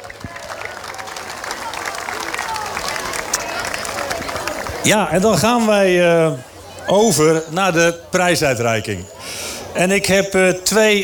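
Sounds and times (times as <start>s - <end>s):
audience applause: 0.0s - 5.6s
speech: 4.8s - 9.2s, 9.8s - 11.0s.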